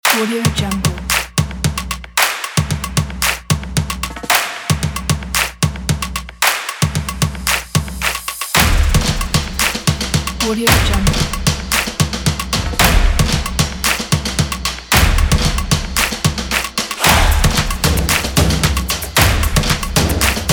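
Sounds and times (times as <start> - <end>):
drums: 0.0 - 20.5.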